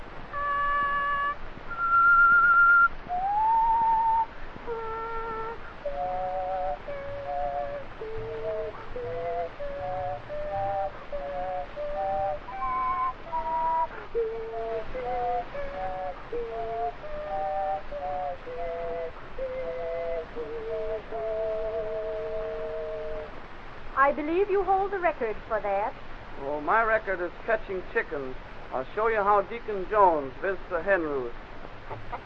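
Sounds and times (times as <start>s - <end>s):
person whistling several tones at once: 0.4s - 23.3s
speech: 24.1s - 32.1s.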